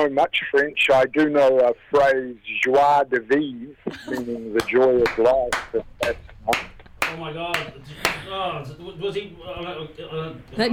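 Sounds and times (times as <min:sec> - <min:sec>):
speech: 0:00.0 - 0:10.7
slow hand clap: 0:04.6 - 0:08.3.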